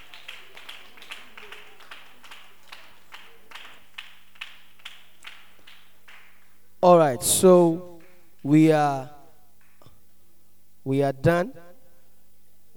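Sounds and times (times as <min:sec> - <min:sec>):
scattered applause: 0:00.0 - 0:06.7
group of people clapping in steady rhythm: 0:00.0 - 0:10.2
speech: 0:06.8 - 0:09.2, 0:10.8 - 0:11.6.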